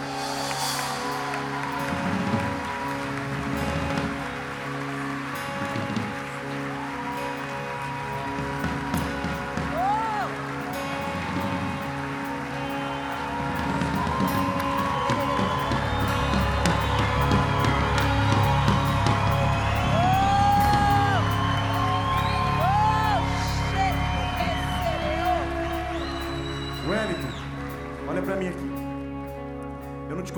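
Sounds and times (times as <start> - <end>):
congregation whooping in a church service: 0.0 - 28.3
congregation applauding in a church service: 0.0 - 30.2.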